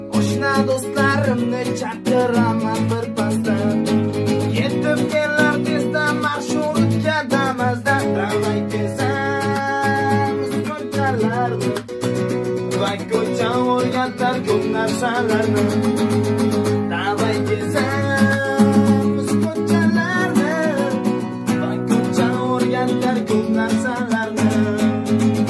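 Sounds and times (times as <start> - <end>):
guitar playing a cover: 0.0 - 25.4.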